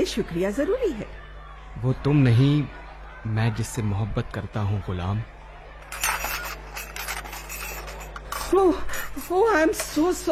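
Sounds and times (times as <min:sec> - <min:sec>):
speech: 0:00.0 - 0:01.2, 0:01.8 - 0:06.0, 0:08.5 - 0:10.3
dishes falling and clattering: 0:05.8 - 0:10.0.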